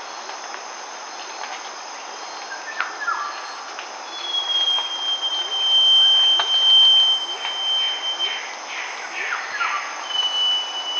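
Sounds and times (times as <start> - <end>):
northern scrub robin: 2.2 - 10.9.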